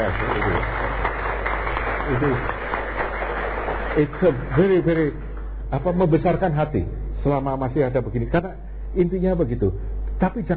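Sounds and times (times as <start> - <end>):
applause: 0.0 - 5.4
speech: 2.1 - 2.6, 4.0 - 10.5.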